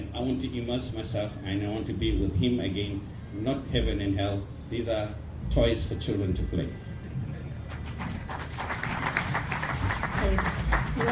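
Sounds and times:
speech: 0.2 - 6.8
audience applause: 7.7 - 11.0.

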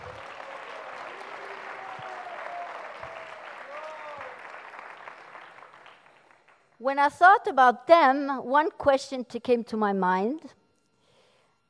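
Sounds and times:
audience applause: 0.0 - 6.6
speech: 6.8 - 10.6.

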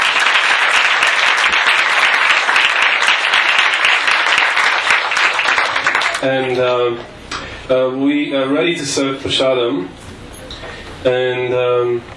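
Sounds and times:
audience applause: 0.0 - 6.2
speech: 6.2 - 10.0, 11.0 - 12.1.

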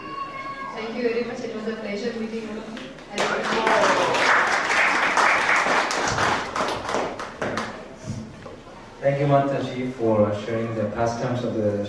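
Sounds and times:
speech: 0.8 - 4.3, 9.0 - 11.8
audience applause: 3.2 - 7.8.

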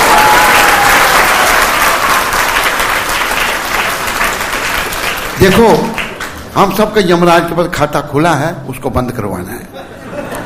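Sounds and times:
audience clapping loudly: 0.0 - 7.0
speech: 5.4 - 6.0, 6.6 - 10.0
laughter: 9.7 - 10.4.

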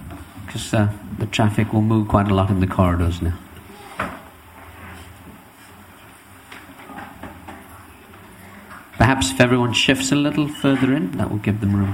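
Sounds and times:
speech: 0.5 - 3.5, 9.4 - 11.9
doors closing: 6.7 - 11.9.

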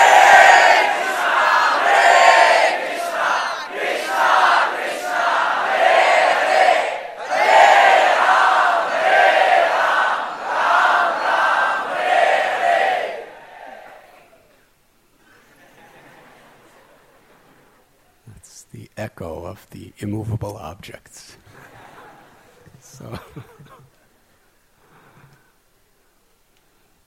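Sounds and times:
crowd of devotees chanting the holy name: 0.0 - 14.5
laughter: 15.2 - 17.8, 21.4 - 24.0
speech: 20.7 - 21.4, 23.0 - 24.0.

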